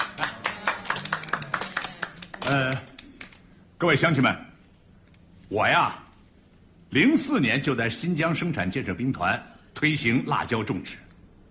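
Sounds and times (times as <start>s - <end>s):
village gathering clapping in welcome for a food company chairman: 0.0s - 3.6s
speech: 2.5s - 2.9s, 3.8s - 4.5s, 5.5s - 6.0s, 6.9s - 11.0s.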